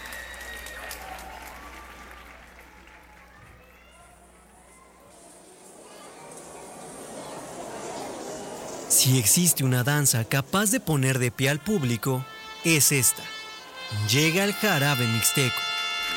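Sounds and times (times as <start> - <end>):
ovation, audience applause: 0.0 - 4.6
speech: 9.0 - 15.7.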